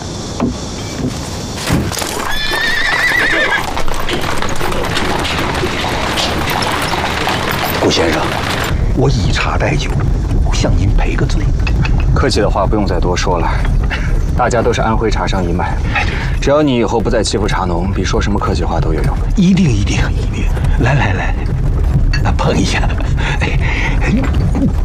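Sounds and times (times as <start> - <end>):
horse hooves pulling a rented carriage: 0.4 - 24.8
horse whinnying: 2.0 - 7.8.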